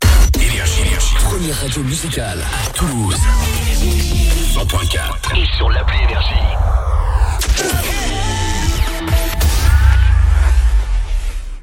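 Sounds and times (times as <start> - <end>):
radio jingle: 0.0 - 11.6.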